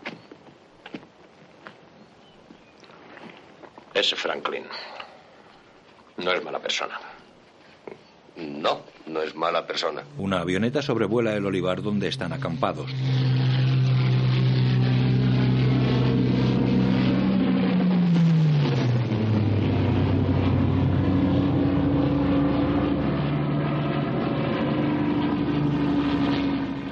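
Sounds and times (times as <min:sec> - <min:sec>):
speech: 0:04.0 - 0:05.0, 0:06.2 - 0:07.1, 0:08.6 - 0:13.5
motorized detachment passing on nearby road: 0:10.0 - 0:26.9.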